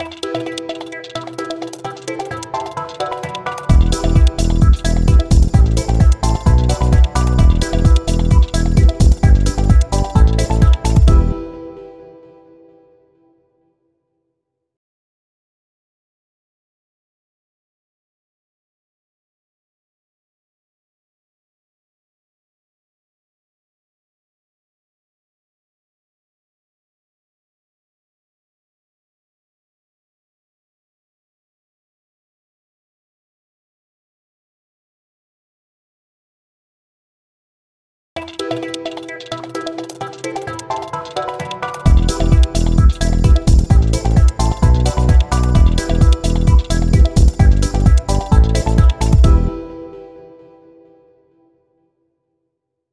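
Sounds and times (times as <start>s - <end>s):
TV jingle: 0.0s - 12.7s, 38.2s - 51.1s.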